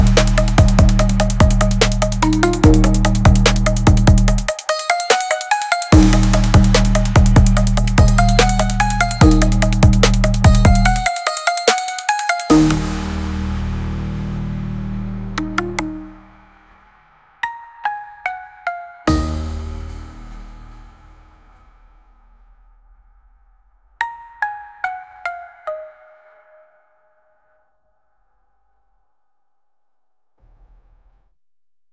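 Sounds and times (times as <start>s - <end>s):
hi-hats: 0.0s - 17.4s, 19.1s - 23.0s.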